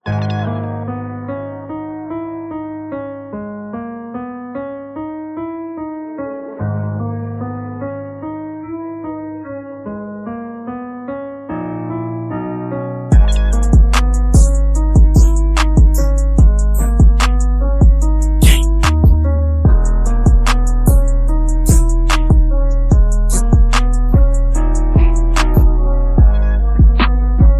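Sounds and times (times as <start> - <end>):
freestyle instrumental beat: 13.1 - 27.5.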